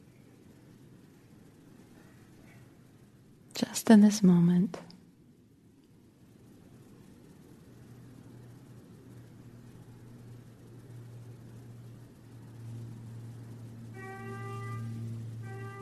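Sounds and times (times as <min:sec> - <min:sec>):
speech: 0:03.9 - 0:04.9
weird honking alarm horn: 0:13.8 - 0:15.8.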